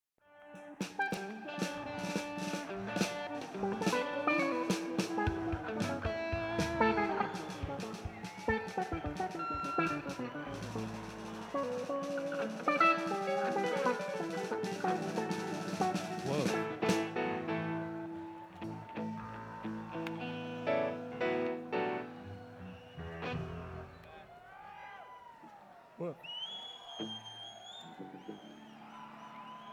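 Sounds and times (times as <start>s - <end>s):
instrument tuning: 0.6s - 24.1s.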